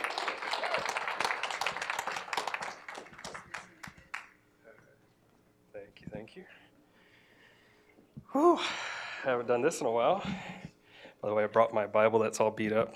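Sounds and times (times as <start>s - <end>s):
audience applause welcoming a speaker at a morning gathering: 0.0s - 4.4s
speech: 6.4s - 6.6s, 8.3s - 10.6s, 11.2s - 12.9s.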